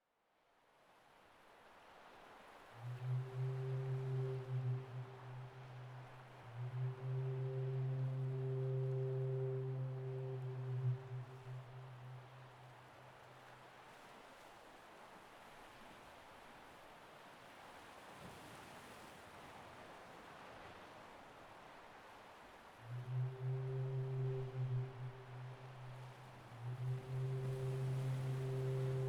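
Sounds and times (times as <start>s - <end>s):
ship horn: 2.7s - 14.0s, 22.7s - 29.0s.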